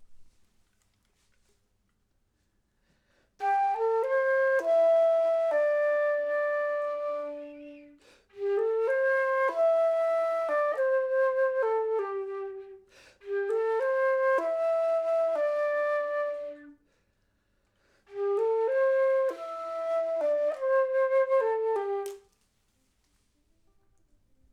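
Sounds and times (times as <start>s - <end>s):
flute: 3.4s - 16.9s, 18.0s - 22.3s.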